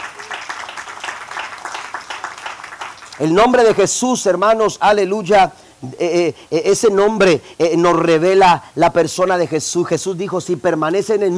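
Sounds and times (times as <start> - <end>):
audience applauding: 0.0 - 3.8
speech: 3.2 - 11.3.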